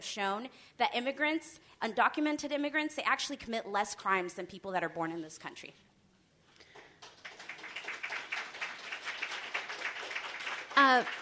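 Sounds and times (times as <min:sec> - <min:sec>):
speech: 0:00.0 - 0:05.9, 0:10.8 - 0:11.2
audience applause: 0:07.0 - 0:11.2.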